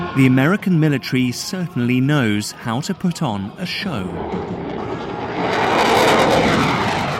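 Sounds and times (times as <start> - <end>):
speech: 0.2 - 4.6
F-22 Raptor fighter jets roaring overhead: 3.8 - 7.1.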